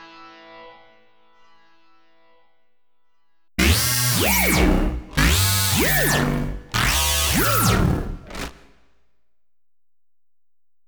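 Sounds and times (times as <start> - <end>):
Synclavier synthesizer sequence: 3.6 - 8.7.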